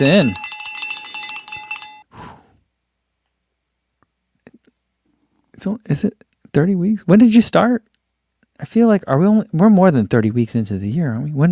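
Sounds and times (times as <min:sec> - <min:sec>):
speech: 0:00.0 - 0:00.4, 0:05.6 - 0:07.9, 0:08.6 - 0:11.5
bell ringing: 0:00.0 - 0:02.1.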